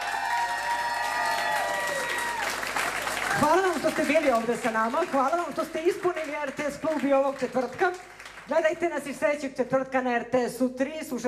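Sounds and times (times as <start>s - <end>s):
audience applause for musicians of a tribute concert at a club: 0.0s - 8.5s
speech: 3.4s - 11.2s.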